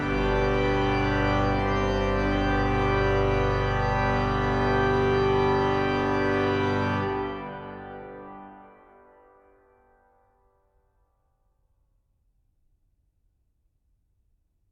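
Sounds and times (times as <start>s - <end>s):
galliard for organ: 0.0s - 9.4s.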